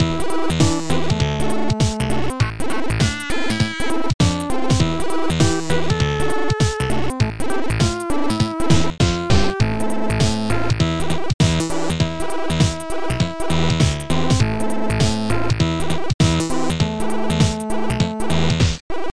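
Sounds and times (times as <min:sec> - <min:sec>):
keygen music ringtone: 0:00.0 - 0:18.6.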